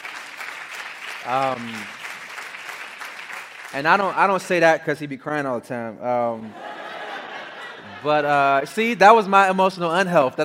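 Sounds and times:
audience applause: 0:00.0 - 0:04.4
speech: 0:01.2 - 0:02.0, 0:03.7 - 0:06.6, 0:08.0 - 0:10.4
laughter: 0:06.4 - 0:08.8.

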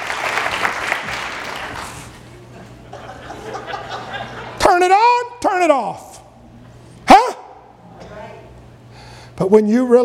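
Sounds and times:
audience clapping hands: 0:00.0 - 0:02.3
scattered laughter: 0:02.7 - 0:04.6
speech: 0:04.8 - 0:06.1, 0:09.4 - 0:10.0.

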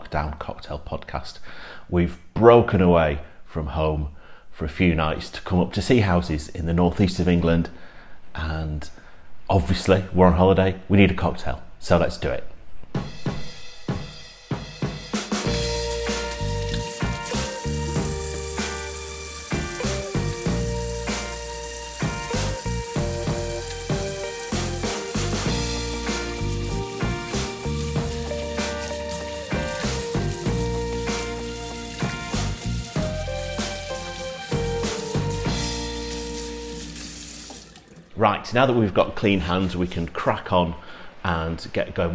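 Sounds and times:
speech: 0:00.1 - 0:13.1, 0:38.6 - 0:42.1
music with sustained tones: 0:15.4 - 0:38.0
rain pattering on a skylight: 0:15.7 - 0:38.1.

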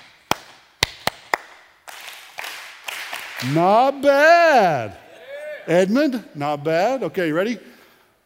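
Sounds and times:
hands clapping a rhythm: 0:00.0 - 0:04.2
speech: 0:03.4 - 0:05.0, 0:05.6 - 0:07.7.

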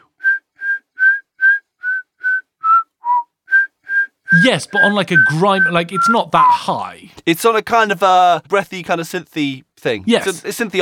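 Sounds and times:
person whistling a short pop-style melody: 0:00.0 - 0:06.6
speech: 0:04.4 - 0:10.7.

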